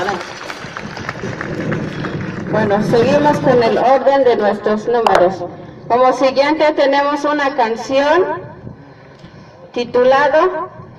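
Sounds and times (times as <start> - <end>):
audience applause: 0.0 - 3.2
speech: 2.6 - 8.5, 9.8 - 10.8.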